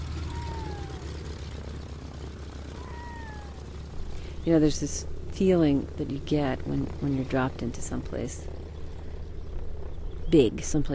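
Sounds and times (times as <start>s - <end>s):
floatplane propeller engine taxiing on a lake: 0.0s - 10.9s
speech: 4.4s - 8.6s, 10.3s - 10.9s.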